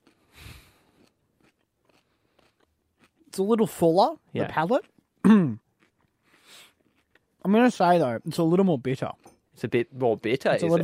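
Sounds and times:
biting and crunching a raw carrot at a tasting: 0.0s - 7.8s
speech: 3.4s - 5.6s, 7.4s - 10.8s.

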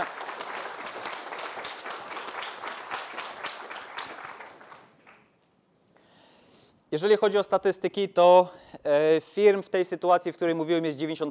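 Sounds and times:
audience applause: 0.0s - 5.3s
speech: 6.9s - 11.2s.

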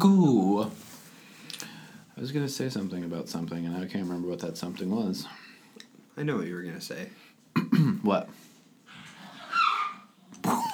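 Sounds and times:
speech: 2.2s - 5.5s, 6.2s - 8.4s
dogs attacking each other: 8.9s - 10.5s.

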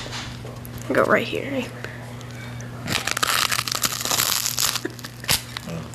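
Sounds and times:
speech: 0.5s - 1.9s
crunching a delicate piece of bread: 2.8s - 5.9s.

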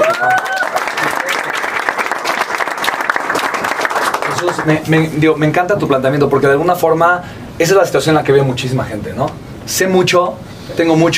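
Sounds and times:
audience applause: 0.0s - 4.8s
speech: 4.4s - 11.1s.

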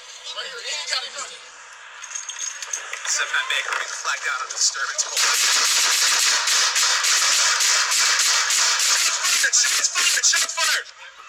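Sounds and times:
speech: 0.4s - 1.6s, 2.6s - 11.2s
rapid gunfire exchange from several guns at a robbery: 5.2s - 10.5s.

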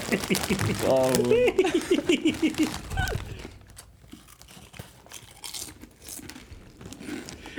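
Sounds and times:
people laughing: 0.0s - 3.4s
crinkling: 0.0s - 7.5s
crunching and chewing chips near microphone: 0.0s - 7.5s
speech: 0.3s - 3.2s.

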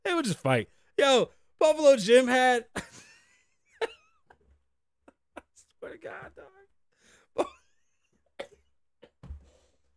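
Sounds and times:
speech: 0.2s - 3.0s, 5.8s - 6.6s
asthmatic coughing: 7.3s - 9.2s.

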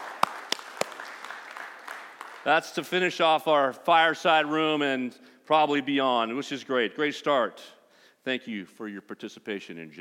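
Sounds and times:
audience hands clapping: 0.0s - 3.1s
hiss: 0.0s - 9.9s
speech: 2.4s - 9.9s.

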